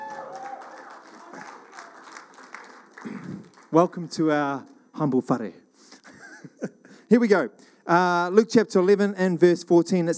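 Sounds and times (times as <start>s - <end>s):
audience applause: 0.0s - 4.1s
speech: 3.0s - 5.6s, 7.1s - 10.1s.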